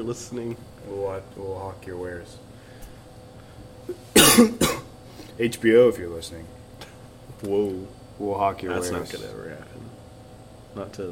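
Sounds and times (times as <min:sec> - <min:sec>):
speech: 0:00.0 - 0:02.5, 0:03.9 - 0:04.8, 0:05.4 - 0:06.6, 0:07.4 - 0:10.0, 0:10.8 - 0:11.0
harsh raspy coughs from bronchitis: 0:04.0 - 0:05.0.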